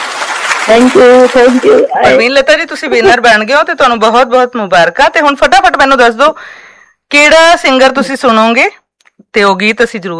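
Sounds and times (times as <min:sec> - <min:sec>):
applause for a quiz winner: 0:00.0 - 0:01.8
speech: 0:00.7 - 0:10.1.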